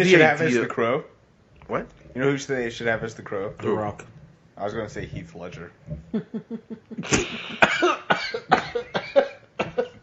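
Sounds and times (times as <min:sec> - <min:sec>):
speech: 0:00.0 - 0:01.1, 0:01.7 - 0:09.4
person coughing fit: 0:07.0 - 0:10.0.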